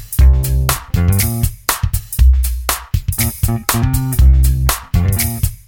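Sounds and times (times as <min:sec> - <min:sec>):
smooth street music: 0:00.2 - 0:01.5, 0:03.2 - 0:05.4.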